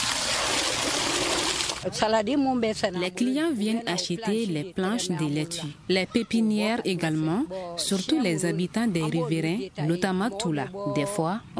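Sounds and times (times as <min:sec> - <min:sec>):
water splashing as children water plants in a market garden in Bougouni: 0:00.0 - 0:01.9
speech: 0:01.8 - 0:11.5.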